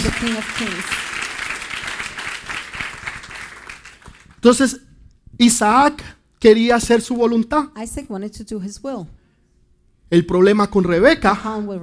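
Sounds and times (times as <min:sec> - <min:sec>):
audience applause: 0:00.0 - 0:04.4
speech: 0:00.2 - 0:01.1, 0:04.4 - 0:04.8, 0:05.4 - 0:09.2, 0:10.1 - 0:11.8.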